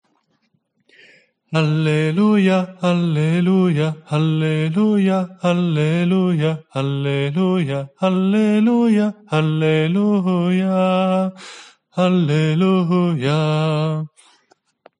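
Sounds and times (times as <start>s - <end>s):
lead voice singing an alleluia ritornello: 1.5s - 14.3s
choir singing: 1.6s - 10.7s.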